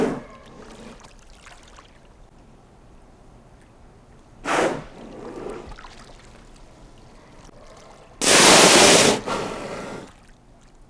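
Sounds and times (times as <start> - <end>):
water splashing: 0.0 - 2.4, 3.5 - 10.8
killer whale blow: 4.4 - 6.0, 7.6 - 10.3.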